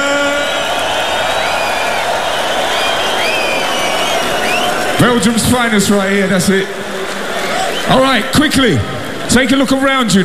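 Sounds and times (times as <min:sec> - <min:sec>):
festival crowd cheering: 0:00.0 - 0:10.2
rising whistles and whoops: 0:00.1 - 0:05.0
dense clapping: 0:00.3 - 0:05.0
speech: 0:05.0 - 0:06.8, 0:07.9 - 0:10.2.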